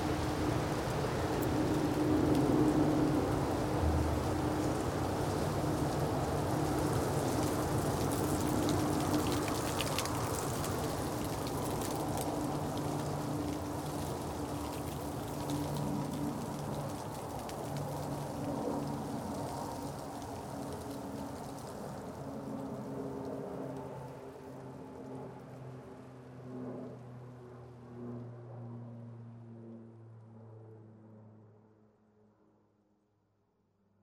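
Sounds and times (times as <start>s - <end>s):
ice-coated trees crackling and rustling in the wind: 0.0s - 26.6s.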